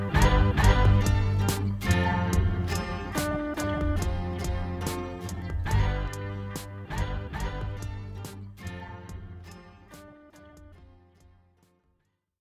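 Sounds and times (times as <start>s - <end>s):
song: 0.0s - 9.6s.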